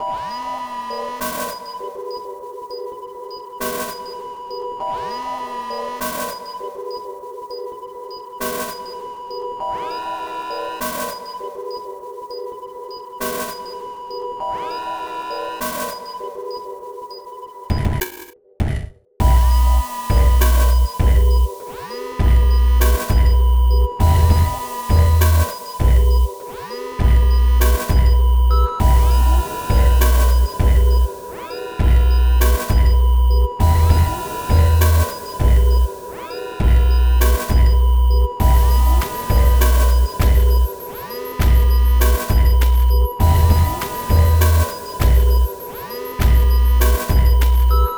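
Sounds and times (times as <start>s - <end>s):
sine wave tone: 0.0s - 17.7s, 19.2s - 47.9s.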